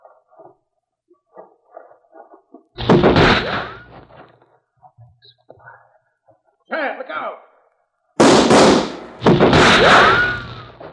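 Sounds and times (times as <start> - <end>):
revolver gunshots in a 1949 western gunfight: 8.2 - 10.5.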